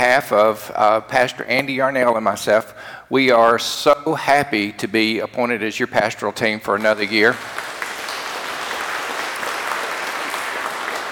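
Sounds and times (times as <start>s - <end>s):
speech: 0.2s - 7.6s
audience applause: 7.0s - 11.1s.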